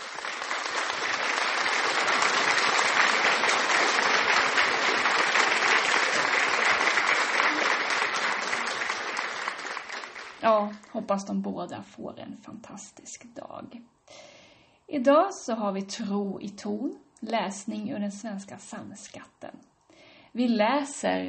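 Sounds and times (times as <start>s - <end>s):
applause: 0.0s - 10.9s
speech: 10.4s - 14.2s, 14.9s - 19.7s, 20.4s - 21.2s.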